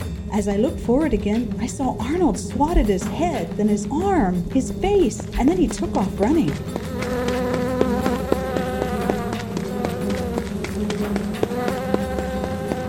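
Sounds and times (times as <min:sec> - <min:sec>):
speech: 0:00.3 - 0:07.1
stinging insects buzzing in a swarm: 0:02.6 - 0:12.8.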